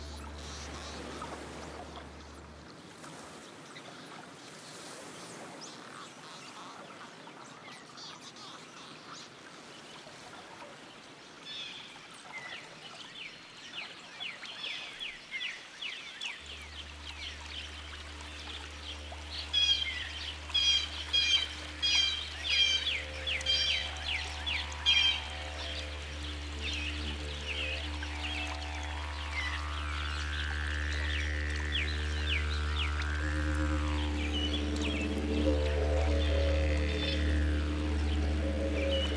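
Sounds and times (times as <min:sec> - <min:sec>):
didgeridoo: 0:00.0 - 0:02.6, 0:16.5 - 0:39.1.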